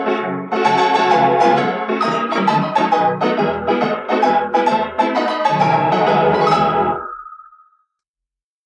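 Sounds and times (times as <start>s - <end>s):
Wurlitzer IX Nickelodeon: 0.5s - 7.1s.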